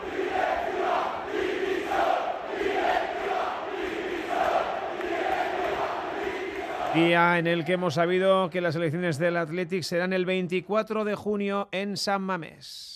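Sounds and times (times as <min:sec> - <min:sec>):
football stadium crowd cheering and chanting in unison: 0:00.0 - 0:10.7
speech: 0:07.0 - 0:12.9.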